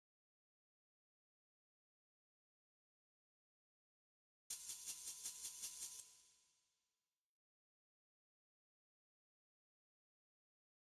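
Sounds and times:
shaker: 4.5 - 6.5.

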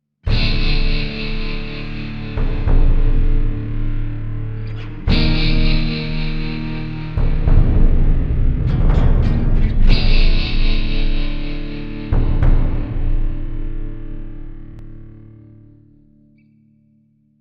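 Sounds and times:
Mexican music stinger: 0.3 - 15.8.

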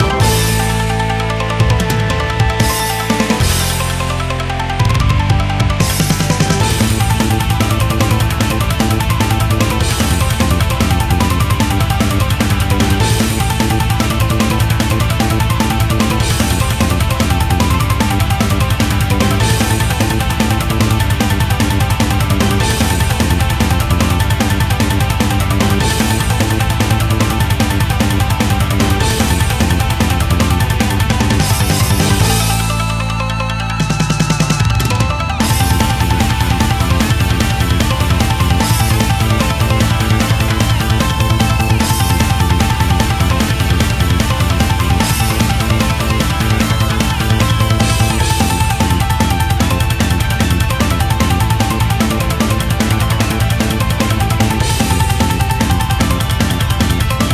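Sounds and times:
battle music loop: 0.0 - 57.3.

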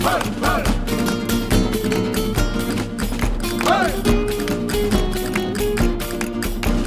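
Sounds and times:
shooter world music: 0.0 - 6.8.

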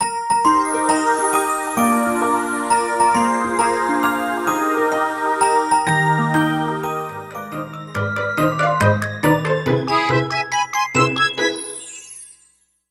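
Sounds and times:
birthday jingle: 0.0 - 12.8.

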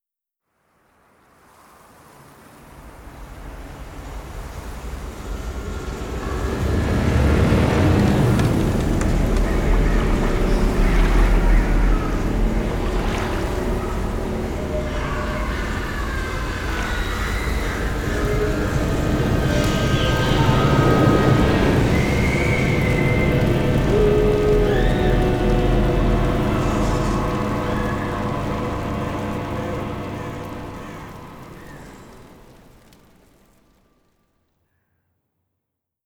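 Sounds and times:
ambient intro music: 7.0 - 33.2.

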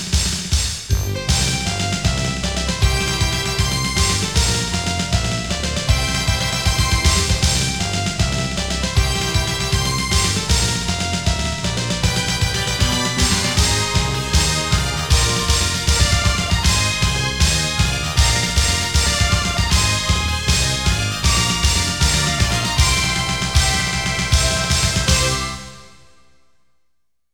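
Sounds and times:
march music: 0.1 - 26.2.

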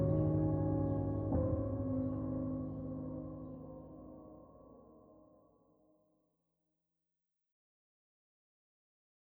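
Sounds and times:
soft piano solo: 0.0 - 4.6.

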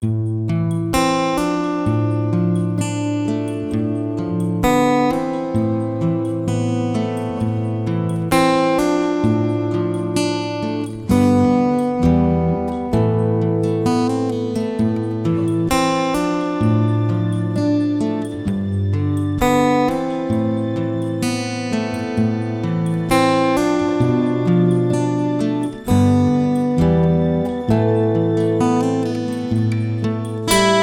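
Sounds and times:
guitar: 0.0 - 30.8.

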